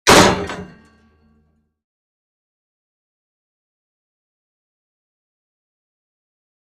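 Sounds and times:
metal gate single bang impact: 0.0 - 1.2.

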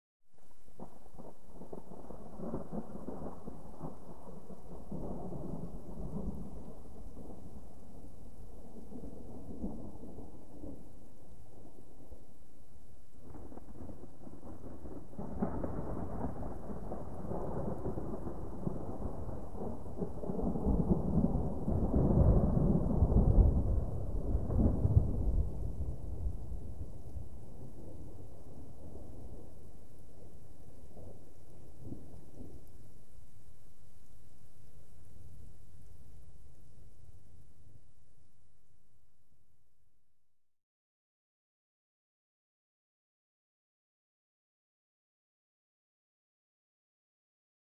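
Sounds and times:
gentle crackling thunder: 0.4 - 38.4.

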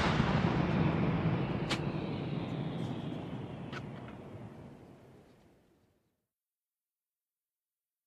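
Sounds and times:
120 mm mortar firing outdoors: 0.0 - 4.4.

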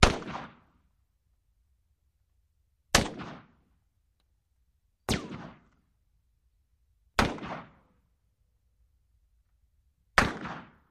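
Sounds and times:
Russian SKS rifle single shot: 0.0 - 0.7, 2.9 - 3.6, 5.1 - 5.8, 7.2 - 7.9, 10.2 - 10.8.

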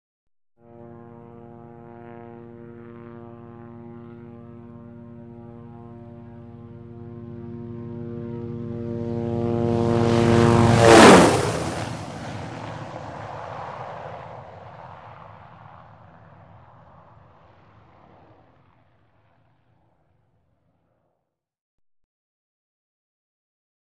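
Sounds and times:
Hughes 500 helicopter: 0.6 - 21.2.

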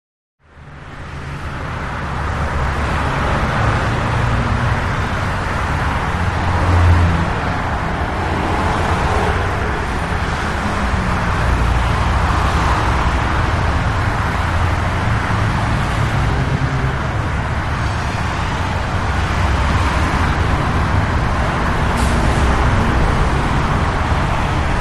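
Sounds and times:
very heavy freeway traffic: 0.4 - 24.8.

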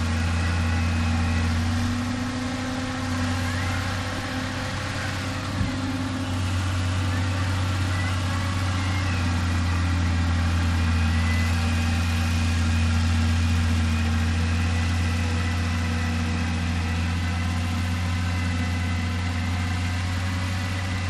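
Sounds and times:
bulldozer starting up, working, idling and switching off: 0.0 - 21.0.

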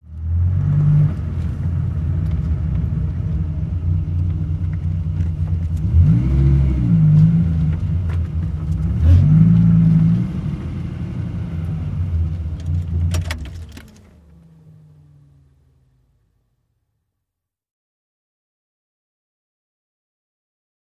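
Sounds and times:
sports car accelerating in forward gear: 0.1 - 16.4.

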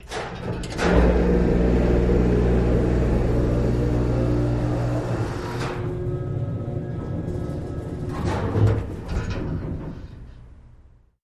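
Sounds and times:
utility elevator running: 0.0 - 10.1.

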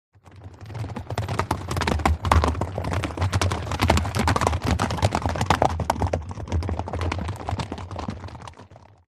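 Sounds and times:
three horses passing microphone: 0.2 - 9.0.

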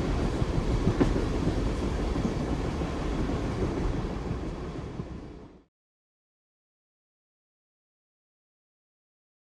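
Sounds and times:
passenger train exterior: 0.0 - 5.7.

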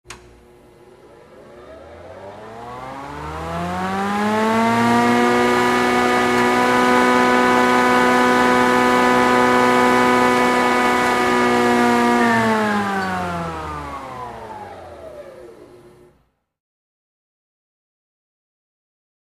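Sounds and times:
electric saw starting and cutting through metal: 1.1 - 15.2.

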